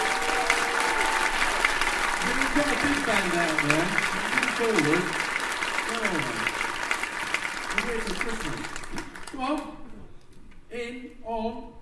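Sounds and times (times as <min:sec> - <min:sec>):
audience applause: 0:00.0 - 0:09.4
speech: 0:02.6 - 0:05.3, 0:05.9 - 0:06.6, 0:07.8 - 0:09.8, 0:10.7 - 0:11.7.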